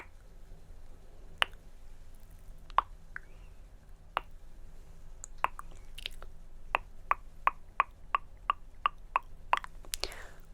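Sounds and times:
faint low hum: 0.0s - 10.5s
soft wet mouth sounds: 1.4s - 1.6s, 2.2s - 3.4s, 5.2s - 10.4s
tongue clicking: 1.4s - 1.6s, 2.2s - 3.4s, 4.2s - 4.4s, 5.2s - 10.4s.

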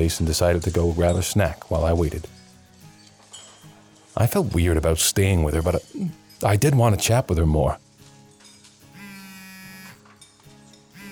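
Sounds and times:
speech: 0.0s - 2.4s, 4.2s - 7.8s
mobile phone buzzing: 9.0s - 10.0s.

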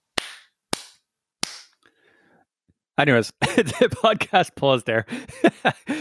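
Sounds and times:
hand claps for an editing sync test: 0.0s - 1.7s
speech: 3.0s - 5.9s
laughter: 3.4s - 4.3s, 5.2s - 5.9s.

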